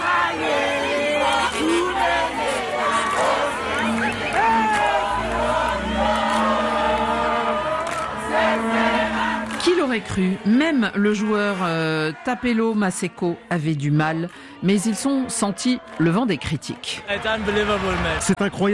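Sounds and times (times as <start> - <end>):
sustained chant-like tones: 0.0 - 12.4
large crowd of fans celebrating and cheering: 0.0 - 18.7
speech: 9.8 - 18.7.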